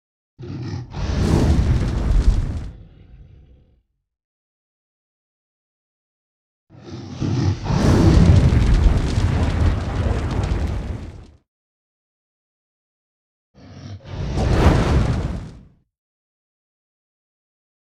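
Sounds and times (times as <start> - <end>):
dragon roaring: 0.4 - 3.8, 6.7 - 11.1, 13.6 - 15.6.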